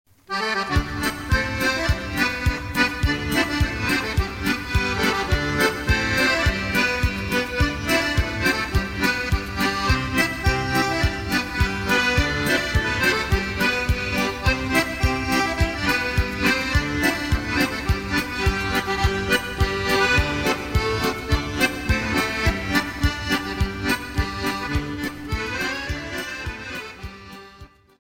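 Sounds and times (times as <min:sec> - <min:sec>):
Polish krakowiak folk dance music: 0:00.1 - 0:27.9.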